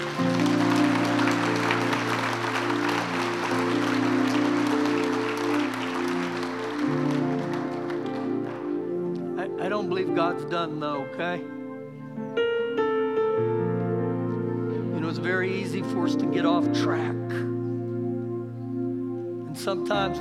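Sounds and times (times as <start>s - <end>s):
crowd clapping: 0.0s - 9.4s
sustained keyboard chords: 0.0s - 20.1s
speech: 9.9s - 11.6s, 15.4s - 17.2s, 19.6s - 20.1s.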